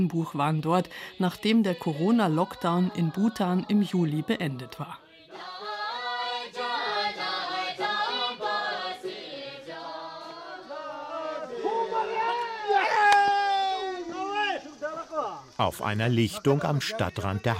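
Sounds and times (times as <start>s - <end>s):
speech: 0.0s - 5.5s, 15.6s - 17.5s
crowd cheering loudly: 6.6s - 14.7s.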